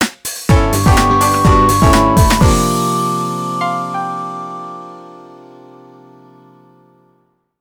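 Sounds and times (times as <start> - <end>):
jingle: 0.5 - 5.7.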